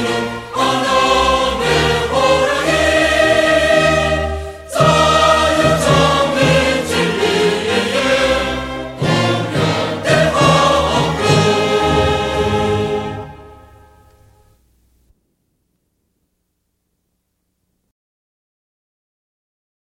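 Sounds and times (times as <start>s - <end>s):
cheer music: 0.0s - 14.6s.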